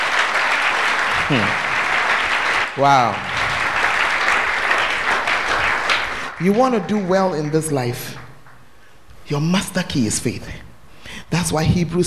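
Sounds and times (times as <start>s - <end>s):
sustained crowd applause: 0.0s - 8.6s
speech: 1.3s - 1.6s, 2.8s - 3.3s, 6.4s - 8.2s, 9.3s - 10.6s, 11.4s - 12.0s.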